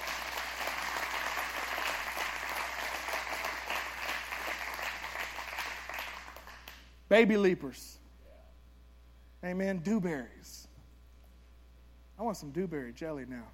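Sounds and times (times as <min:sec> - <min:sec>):
audience clapping hands: 0:00.0 - 0:06.9
speech: 0:07.1 - 0:08.0, 0:09.4 - 0:10.7, 0:12.2 - 0:13.5.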